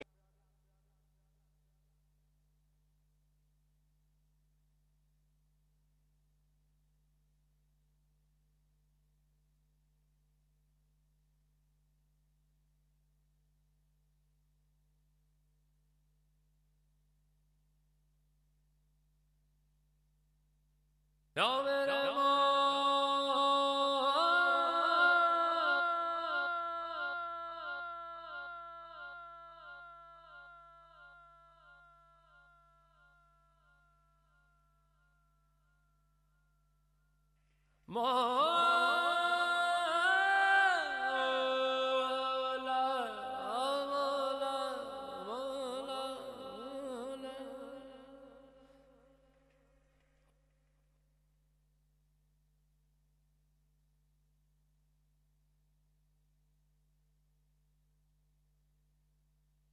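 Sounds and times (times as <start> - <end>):
person singing: 21.4 - 33.3, 37.9 - 48.6.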